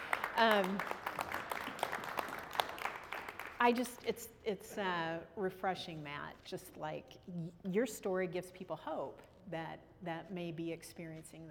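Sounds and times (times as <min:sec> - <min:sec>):
audience clapping for a guest speaker: 0:00.0 - 0:04.0
speech: 0:00.4 - 0:01.0, 0:03.6 - 0:11.4.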